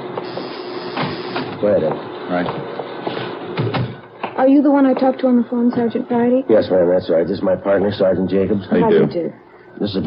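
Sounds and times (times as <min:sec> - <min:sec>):
door buzzer: 0:00.3 - 0:01.5
speech: 0:01.6 - 0:02.7, 0:04.4 - 0:10.0.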